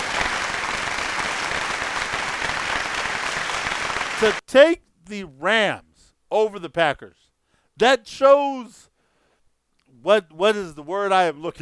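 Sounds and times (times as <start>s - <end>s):
crowd applause sound effect: 0.0s - 4.4s
speech: 4.2s - 7.2s, 7.8s - 8.9s, 10.0s - 11.6s.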